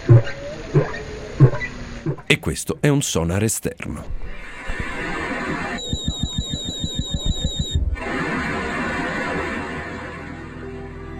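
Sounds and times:
dolphins recorded underwater by hydrophone: 0:00.0 - 0:02.3, 0:04.2 - 0:10.4
speech: 0:00.1 - 0:00.9, 0:02.3 - 0:04.4.

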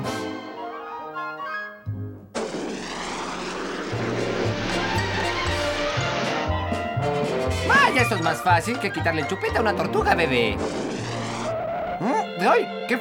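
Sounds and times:
short musical passage: 0:00.0 - 0:02.3, 0:03.9 - 0:12.9
jet engine roar: 0:02.4 - 0:06.6
speech: 0:07.9 - 0:10.9, 0:12.0 - 0:12.9.

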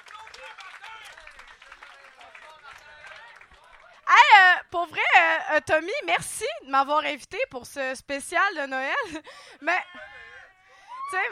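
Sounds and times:
audience applause: 0:00.0 - 0:04.3
speech: 0:04.7 - 0:10.0, 0:11.1 - 0:11.3.

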